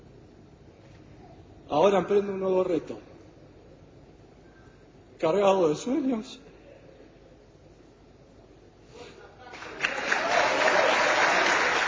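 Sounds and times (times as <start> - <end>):
speech: 1.7 - 3.1, 5.2 - 6.4
audience applause: 9.5 - 11.8.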